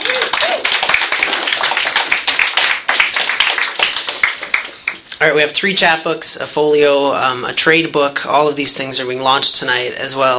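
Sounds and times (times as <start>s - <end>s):
audience clapping: 0.0s - 5.2s
speech: 5.2s - 10.3s.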